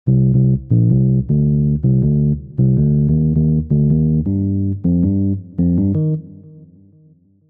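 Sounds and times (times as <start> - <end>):
bass: 0.0 - 6.6.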